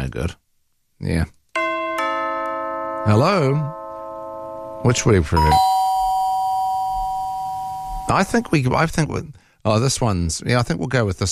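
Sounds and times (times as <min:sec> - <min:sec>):
speech: 0:00.1 - 0:00.4, 0:01.0 - 0:01.4, 0:03.0 - 0:03.8, 0:04.8 - 0:05.8, 0:08.1 - 0:11.3
doorbell sound effect: 0:01.6 - 0:08.6.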